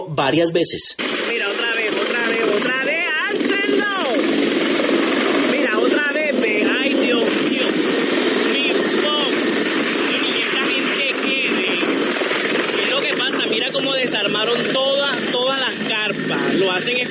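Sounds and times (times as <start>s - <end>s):
speech: 0.0s - 1.5s
helicopter flying low over the Sprat Bay beaches: 1.0s - 17.1s.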